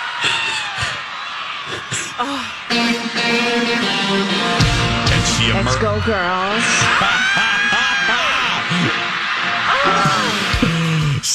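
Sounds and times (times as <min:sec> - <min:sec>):
shouted yells: 0:00.0 - 0:04.1, 0:06.3 - 0:11.1
big concert crowd cheering wildly: 0:00.0 - 0:11.3
laughter: 0:00.0 - 0:11.3
speech: 0:02.2 - 0:07.4.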